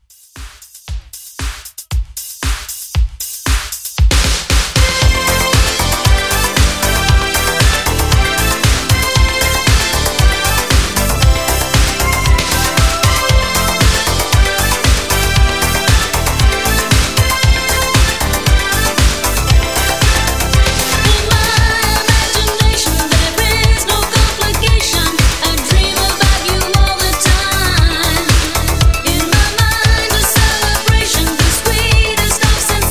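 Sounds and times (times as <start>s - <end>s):
80s disco pop track with redone drums at 116 bpm: 2.2s - 32.8s.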